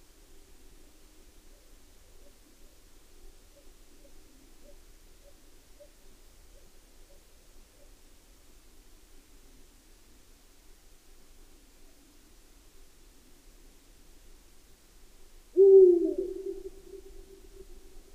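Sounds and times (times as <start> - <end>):
Eurasian eagle-owl hooting: 15.6 - 17.8.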